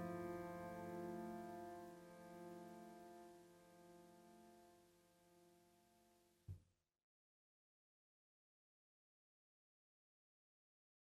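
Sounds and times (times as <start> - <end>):
piano: 0.0 - 6.3.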